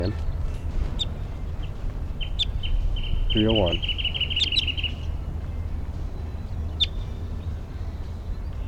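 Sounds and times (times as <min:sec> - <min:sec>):
low rumble: 0:00.0 - 0:08.6
wild orange male bird calling with short high chirps: 0:00.0 - 0:08.6
speech: 0:03.3 - 0:04.0.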